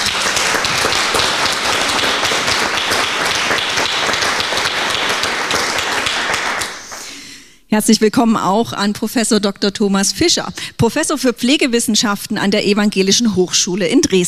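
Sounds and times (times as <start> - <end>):
applause greeting a Saxon state minister at a public event: 0.0 - 7.2
speech: 7.8 - 14.2.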